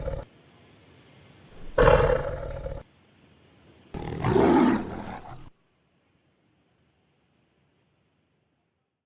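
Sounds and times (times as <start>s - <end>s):
tiger roaring: 0.0s - 0.2s, 1.6s - 2.8s, 4.0s - 5.5s.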